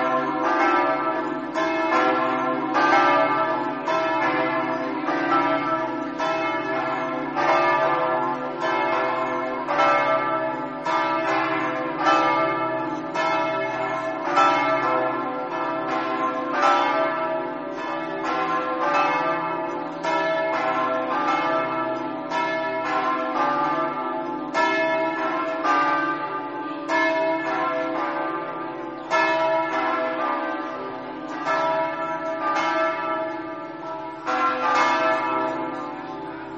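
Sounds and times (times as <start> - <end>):
church bells in Azzano: 0.0 - 36.5.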